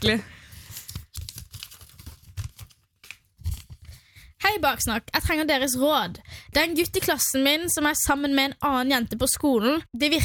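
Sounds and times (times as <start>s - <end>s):
speech: 0.0s - 0.4s, 4.4s - 10.2s
paper slip being drawn from a pile: 0.5s - 4.2s.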